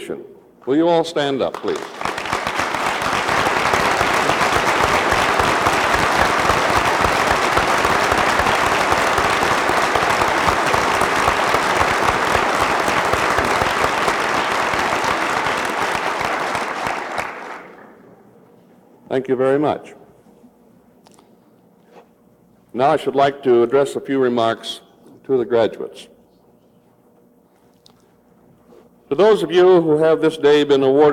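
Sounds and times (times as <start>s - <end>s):
speech: 0.1s - 2.1s, 19.2s - 20.0s, 22.8s - 26.1s, 29.1s - 31.1s
crowd applauding at a graduation ceremony: 1.5s - 18.0s.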